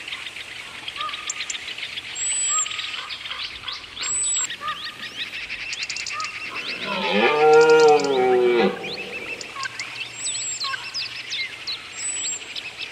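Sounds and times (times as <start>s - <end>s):
deer calling in a forest: 6.2s - 9.8s.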